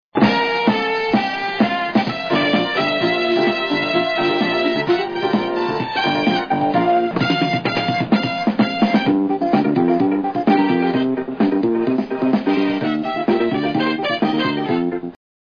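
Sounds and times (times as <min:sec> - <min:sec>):
dance music: 0:00.2 - 0:15.2.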